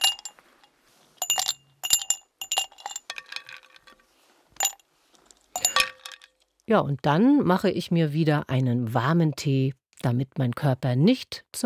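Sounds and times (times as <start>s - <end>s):
ice cubes clinking in a glass: 0.0s - 0.4s, 1.2s - 4.0s, 5.6s - 6.5s
speech: 6.7s - 11.6s.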